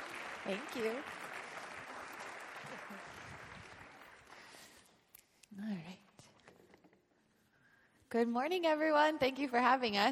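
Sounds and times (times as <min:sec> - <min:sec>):
audience clapping welcoming two speakers onto the stage at a morning gathering: 0:00.0 - 0:05.0
speech: 0:00.5 - 0:01.2, 0:02.7 - 0:03.4, 0:05.5 - 0:06.0, 0:08.1 - 0:10.1.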